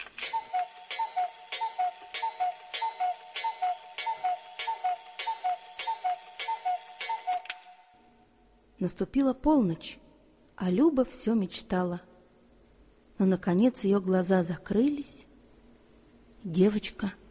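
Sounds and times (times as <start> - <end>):
clock in the big room striking twelve times: 0.2 - 7.4
speech: 8.8 - 10.0, 10.6 - 12.1, 13.2 - 15.3, 16.4 - 17.2.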